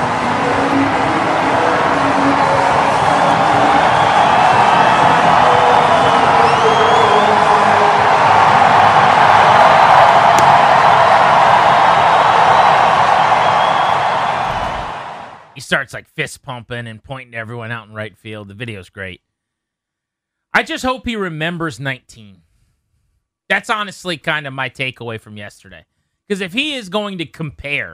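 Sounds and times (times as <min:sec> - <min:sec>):
stadium crowd cheering player introduction at Petco Park: 0:00.0 - 0:15.6
whistles: 0:03.2 - 0:07.7, 0:11.6 - 0:15.2
speech: 0:15.7 - 0:19.3, 0:20.5 - 0:22.5, 0:23.5 - 0:27.9.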